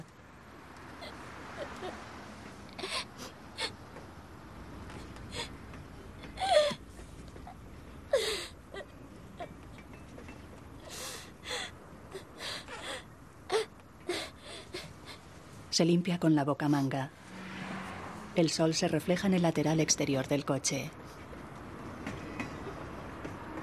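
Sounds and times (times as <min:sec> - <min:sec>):
woman crying inconsolably inside a car: 0:01.0 - 0:02.0, 0:02.7 - 0:03.8, 0:05.3 - 0:05.6, 0:06.2 - 0:06.8, 0:07.4 - 0:09.6, 0:10.9 - 0:15.2
speech: 0:15.8 - 0:17.2, 0:18.4 - 0:21.0.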